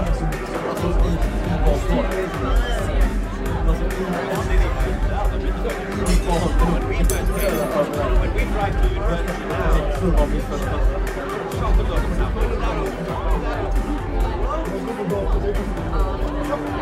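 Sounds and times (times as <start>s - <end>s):
babble of many voices in a bar: 0.0s - 16.8s
clinks in a bar: 7.1s - 7.8s.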